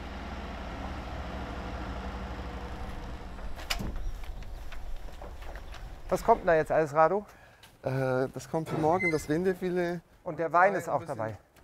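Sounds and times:
delivery truck reversing up a sandy dune: 0.0 - 6.9
speech: 6.1 - 11.4.

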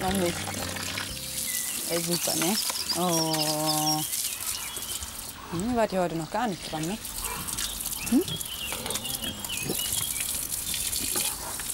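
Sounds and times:
speech: 0.0 - 0.7, 1.9 - 4.2, 5.5 - 7.2, 8.1 - 8.5
pigs grunting: 7.3 - 10.1.

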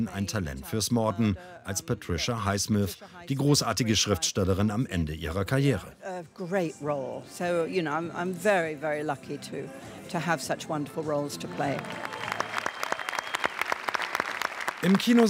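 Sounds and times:
speech: 0.0 - 12.2, 14.8 - 15.2
cinema audience applause: 11.5 - 15.2.

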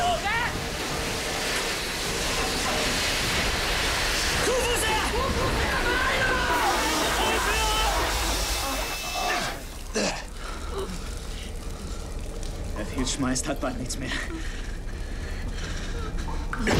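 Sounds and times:
water gushing: 0.0 - 15.4
strained voices: 4.3 - 16.7
speech: 13.2 - 14.6.

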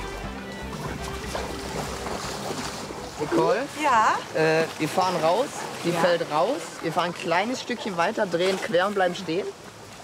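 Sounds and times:
motorized inflatable boat engine droning on a lake: 0.0 - 4.4
water splashing and churning against an inflatable boat hull: 0.0 - 10.0
speech: 3.2 - 9.6.

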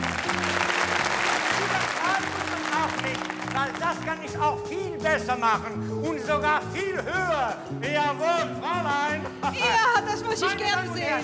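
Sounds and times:
audience clapping: 0.0 - 4.4
speech: 3.6 - 11.2.

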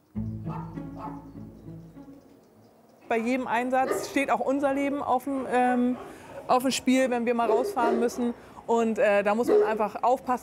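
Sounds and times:
dogs barking and yelping at an animal shelter: 0.5 - 2.9, 3.8 - 4.4, 5.4 - 6.7, 7.3 - 8.5, 9.4 - 10.0
speech: 3.1 - 10.4.

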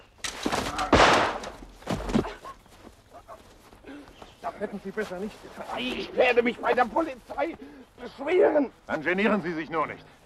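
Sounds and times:
rifle gunshots fired at random by a drunk man: 0.9 - 1.6
speech: 4.6 - 10.2.

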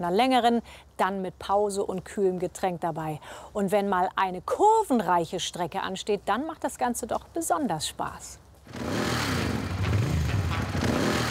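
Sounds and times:
speech: 0.0 - 9.4
motorcycle engine running and revving: 8.7 - 11.2.

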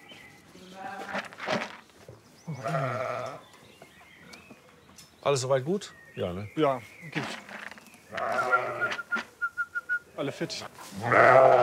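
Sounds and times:
sheep bleating: 2.5 - 3.4, 8.1 - 9.1, 10.9 - 11.6
speech: 5.2 - 7.4, 10.2 - 11.6.

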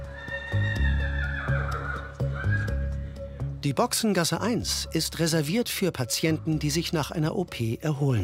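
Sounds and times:
horse neighing at equine clinic: 0.1 - 2.9
speech: 3.6 - 8.2.

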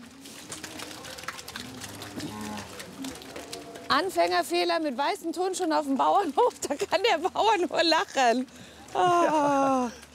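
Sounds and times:
cows mooing on a farm: 0.4 - 4.4
speech: 3.9 - 10.0.

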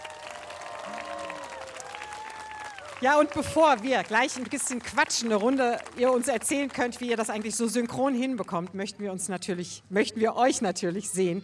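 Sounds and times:
studio audience applause for two dancers: 0.0 - 7.9
speech: 3.0 - 11.4.

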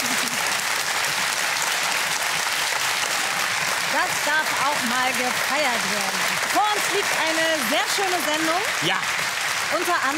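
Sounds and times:
audience applause: 0.0 - 10.1
speech: 3.9 - 10.1.

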